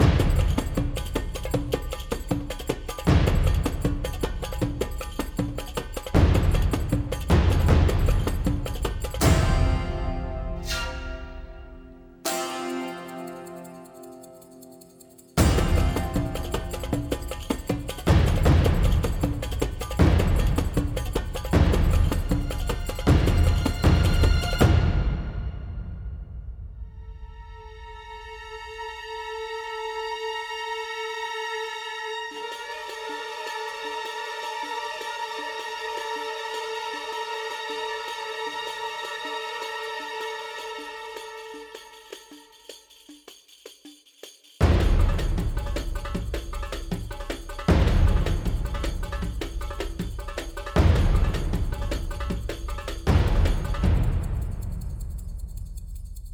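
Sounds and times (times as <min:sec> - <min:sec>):
percussion loop: 0:00.0 - 0:26.6, 0:32.5 - 0:56.3.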